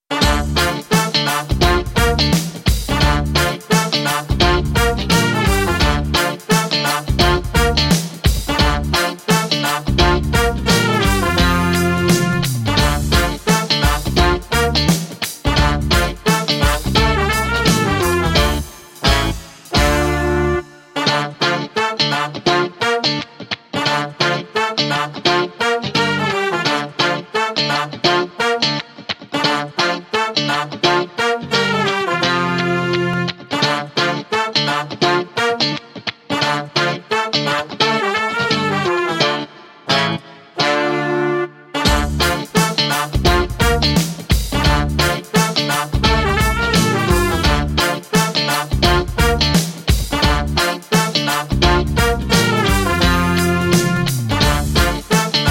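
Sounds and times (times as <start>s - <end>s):
trombone: 0.1s - 23.2s, 23.8s - 55.4s.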